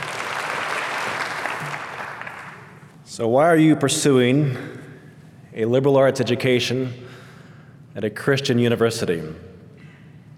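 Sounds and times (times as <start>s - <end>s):
audience applause welcoming a speaker at a Christian university: 0.0s - 2.8s
speech: 3.2s - 4.8s, 5.6s - 7.1s, 8.0s - 9.5s.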